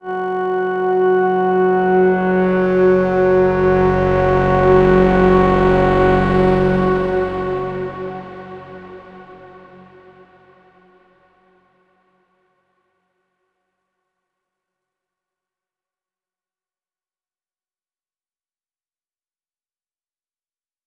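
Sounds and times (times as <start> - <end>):
overlay drone: 0.1 - 10.7.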